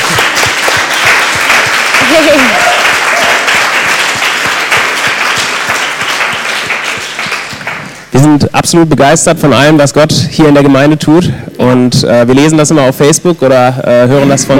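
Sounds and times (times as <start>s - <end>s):
audience applause for the band: 0.0s - 8.1s
faint cheer: 2.0s - 3.9s
speech: 2.2s - 2.7s, 8.4s - 14.5s.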